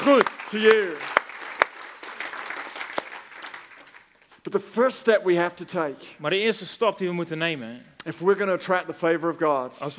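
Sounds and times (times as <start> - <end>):
speech: 0.0 - 1.1, 4.4 - 9.9
audience applause: 0.0 - 4.2.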